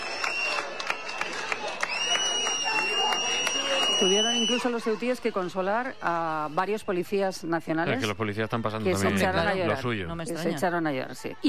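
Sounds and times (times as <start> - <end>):
applause: 0.0 - 6.1
speech: 4.0 - 11.4.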